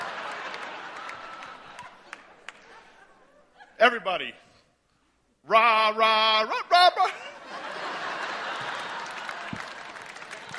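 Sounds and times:
audience applause: 0.0 - 2.7, 7.5 - 10.5
laughter: 0.0 - 4.1, 6.3 - 10.5
speech: 3.8 - 4.5, 5.5 - 6.6.

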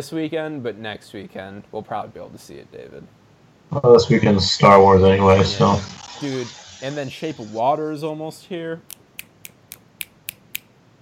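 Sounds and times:
speech: 0.0 - 9.0
finger snap: 8.9 - 10.7.

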